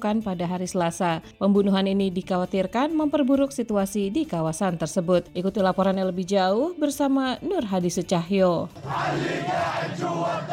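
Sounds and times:
speech: 0:00.0 - 0:10.5
crowd chanting slogans in the streets of Ramallah: 0:08.8 - 0:10.5.

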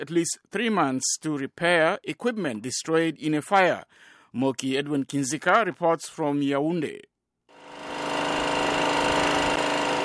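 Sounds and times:
speech: 0:00.0 - 0:07.1
standby generator in Yaoundé, Cameroon, running during a power outage: 0:07.5 - 0:10.0.

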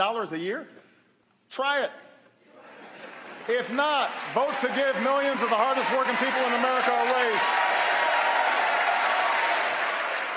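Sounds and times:
speech: 0:00.0 - 0:00.8, 0:01.5 - 0:02.1, 0:03.4 - 0:07.7
lawmakers applauding during State of the Union address: 0:03.3 - 0:10.3.

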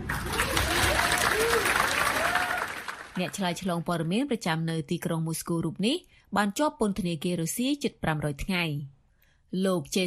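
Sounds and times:
colleagues of journalist Gershkovich clapping at news of his release: 0:00.0 - 0:03.7
speech: 0:03.2 - 0:10.0.

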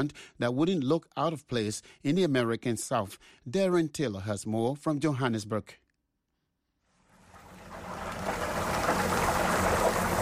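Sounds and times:
speech: 0:00.0 - 0:05.8
battered chicken sizzling in frying oil: 0:07.1 - 0:10.2.

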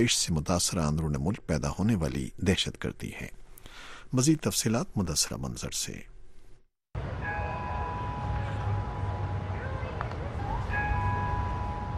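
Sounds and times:
speech: 0:00.0 - 0:06.1
church bells ringing in Orlando: 0:07.0 - 0:11.9.

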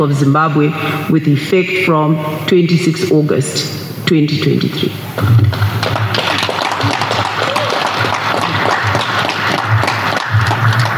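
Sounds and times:
speech: 0:00.0 - 0:05.6
ZANU-PF officials applauding election result: 0:05.4 - 0:10.9.

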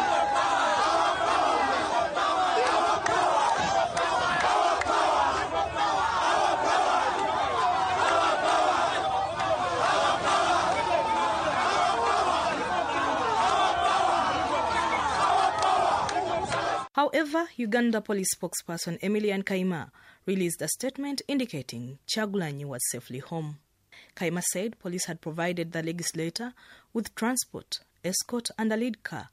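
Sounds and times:
crowd chanting slogans at a police station: 0:00.0 - 0:16.9
speech: 0:17.2 - 0:29.3.

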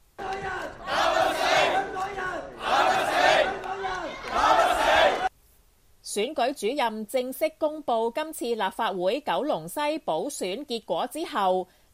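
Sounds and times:
supporters clapping: 0:00.2 - 0:02.4, 0:03.1 - 0:05.3
crowd of supporters shouting encouragement: 0:00.2 - 0:05.3
speech: 0:06.2 - 0:11.8.

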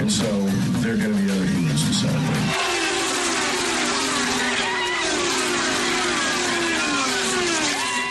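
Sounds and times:
speech: 0:00.2 - 0:02.6
racing car engines at Watkins Glen International in New York: 0:02.1 - 0:08.0.

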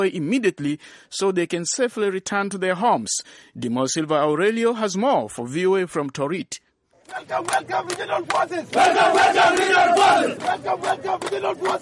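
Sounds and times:
speech: 0:00.0 - 0:11.8
crowd of displaced people chanting a welcome in a Juba camp: 0:07.0 - 0:11.8.

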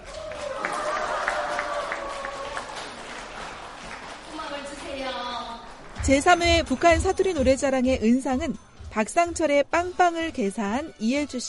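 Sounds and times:
audience applause: 0:00.0 - 0:05.9
speech: 0:06.1 - 0:11.4.

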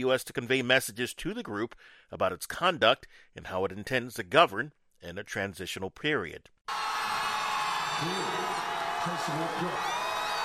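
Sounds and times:
speech: 0:00.0 - 0:06.8, 0:08.0 - 0:10.0
large crowd cheering: 0:06.7 - 0:10.4.

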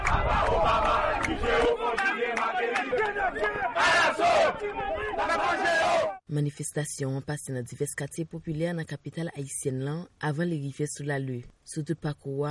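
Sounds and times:
protest crowd shouting slogans: 0:00.0 - 0:06.2
speech: 0:04.5 - 0:12.4.

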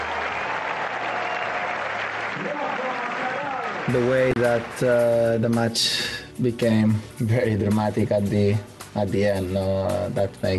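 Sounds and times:
applause for a tennis champion in New York: 0:00.0 - 0:05.3
speech: 0:03.9 - 0:10.5.

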